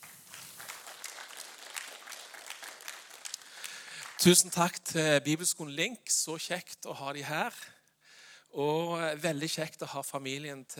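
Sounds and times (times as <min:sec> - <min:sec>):
audience applause: 0:00.0 - 0:04.6
speech: 0:04.2 - 0:07.8, 0:08.5 - 0:10.7.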